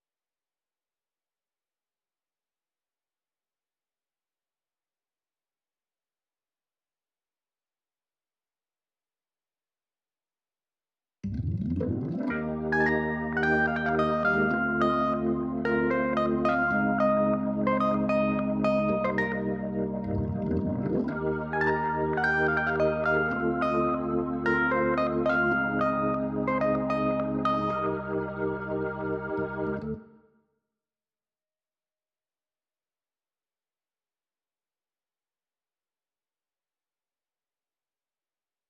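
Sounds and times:
keyboard playing: 11.3s - 30.0s.

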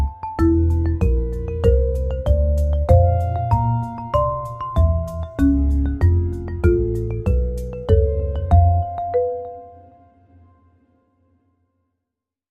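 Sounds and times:
hypnotic marimba: 0.0s - 10.0s.

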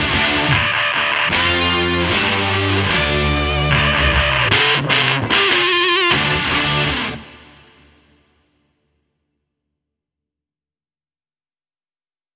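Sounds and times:
guitars playing: 0.0s - 8.0s.

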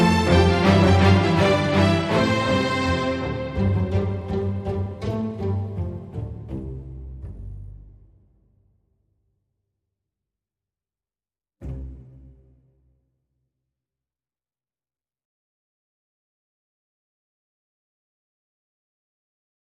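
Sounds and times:
strings: 0.0s - 8.1s, 11.6s - 12.9s.

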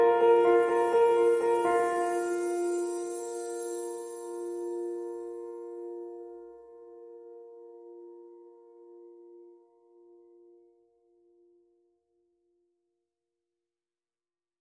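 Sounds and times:
bells: 0.1s - 5.4s.

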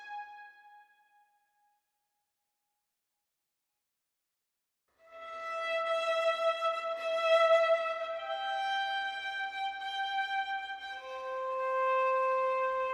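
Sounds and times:
violin only: 5.3s - 12.9s.

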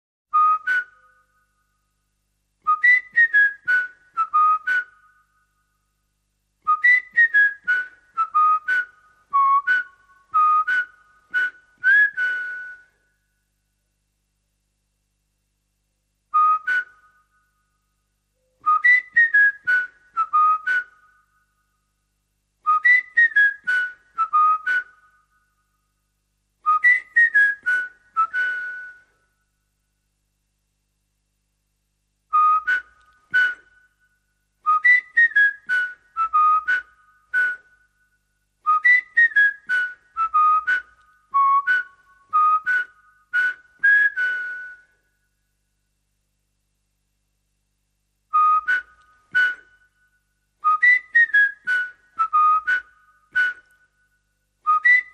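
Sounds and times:
whistle: 0.3s - 1.8s, 2.6s - 5.6s, 6.6s - 13.2s, 16.3s - 17.8s, 18.4s - 21.7s, 22.6s - 25.6s, 26.6s - 29.4s, 32.3s - 45.4s, 48.3s - 55.1s.

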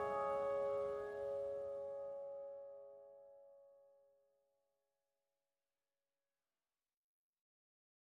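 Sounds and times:
melody: 0.0s - 3.5s.

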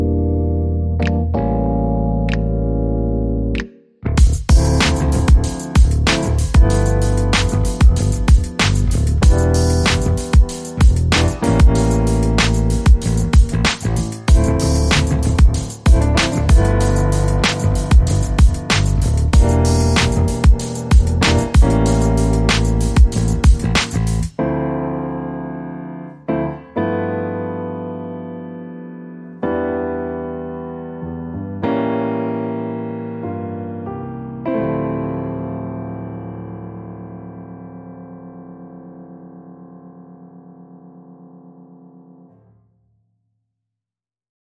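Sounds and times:
bass: 0.0s - 24.5s
piano: 0.0s - 42.7s.

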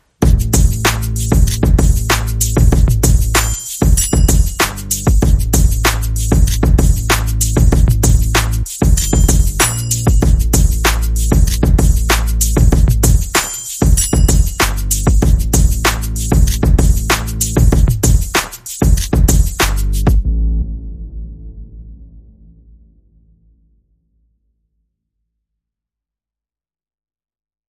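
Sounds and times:
percussion: 0.0s - 20.2s
bass: 0.1s - 23.5s.

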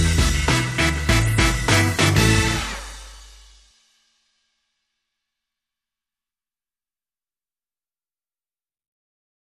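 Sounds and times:
funk music: 0.0s - 3.5s.

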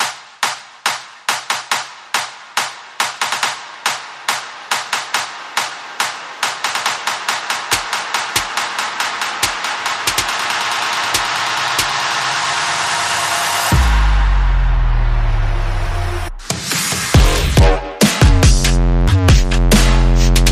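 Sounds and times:
percussion: 0.0s - 20.5s
bass: 13.6s - 20.5s.

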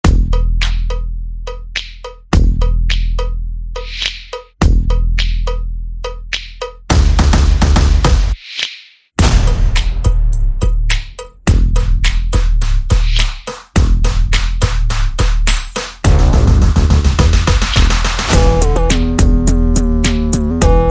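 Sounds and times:
bass: 0.0s - 8.4s, 9.2s - 20.8s
percussion: 0.0s - 20.8s
sound effects: 16.1s - 19.6s.

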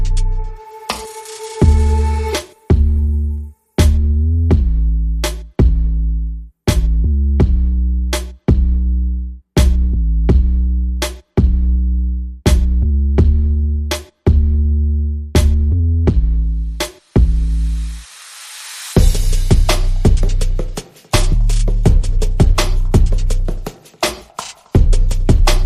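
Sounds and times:
bass: 0.0s - 0.6s, 1.6s - 18.3s, 18.9s - 25.6s
drums: 0.0s - 3.1s, 3.8s - 6.0s, 6.7s - 8.9s, 9.6s - 11.8s, 12.5s - 14.7s, 15.4s - 25.6s
sound effects: 0.0s - 3.5s.

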